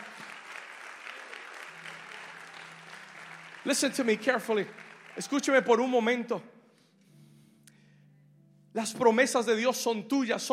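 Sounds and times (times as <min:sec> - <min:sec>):
audience applause: 0:00.0 - 0:06.2
speech: 0:03.6 - 0:06.5, 0:08.8 - 0:10.5.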